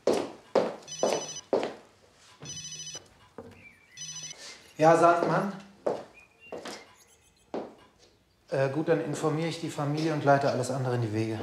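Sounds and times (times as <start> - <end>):
mobile phone ringing: 0.5 - 4.9
speech: 4.8 - 5.7, 8.6 - 11.4.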